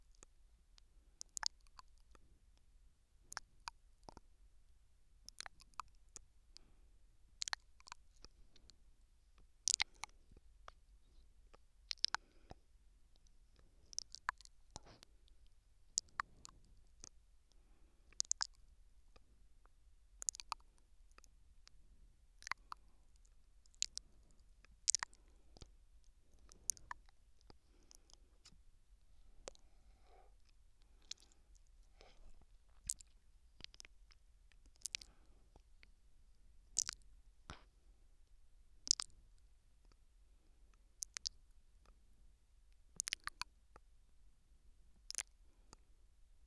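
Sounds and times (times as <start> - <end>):
gentle nibbling on the left ear: 0.0 - 46.0.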